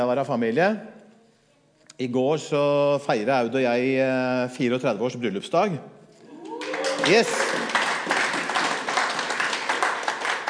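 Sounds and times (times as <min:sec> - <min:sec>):
speech: 0:00.0 - 0:00.9, 0:02.0 - 0:06.0, 0:07.0 - 0:07.4
crowd clapping: 0:06.4 - 0:10.4.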